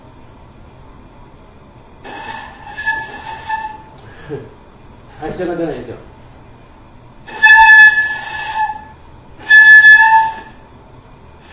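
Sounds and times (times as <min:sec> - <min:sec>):
ancient flute being played: 0:02.1 - 0:03.9, 0:07.3 - 0:10.6
speech: 0:04.3 - 0:04.6, 0:05.2 - 0:06.1.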